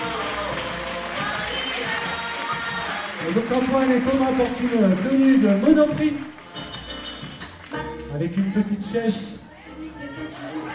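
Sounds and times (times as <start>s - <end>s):
audience applause: 0.0s - 8.6s, 10.3s - 10.7s
speech: 3.3s - 6.3s, 8.2s - 9.4s
faint crowd murmur: 9.4s - 10.7s.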